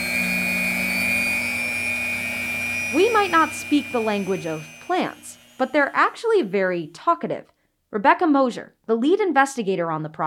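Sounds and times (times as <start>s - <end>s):
lab blender motor whirring: 0.0s - 6.9s
speech: 2.9s - 10.2s.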